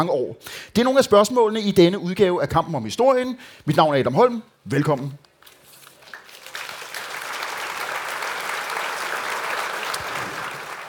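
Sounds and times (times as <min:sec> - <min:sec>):
speech: 0:00.0 - 0:05.3
live audience applause in Øksnehallen, Copenhagen: 0:06.1 - 0:10.8.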